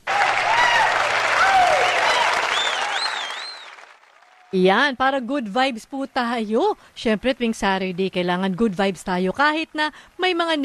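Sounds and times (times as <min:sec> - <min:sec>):
audience applause: 0:00.0 - 0:04.6
speech: 0:04.5 - 0:10.6.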